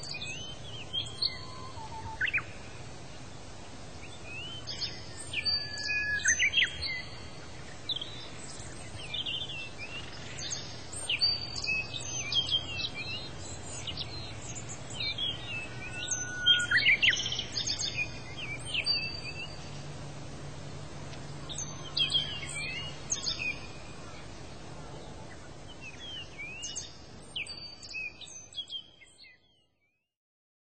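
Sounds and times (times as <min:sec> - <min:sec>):
ambient birds: 0:00.0 - 0:30.0.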